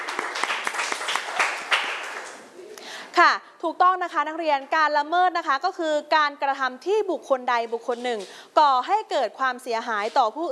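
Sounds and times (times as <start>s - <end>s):
students clapping for themselves: 0.0s - 2.5s
speech: 3.2s - 10.5s.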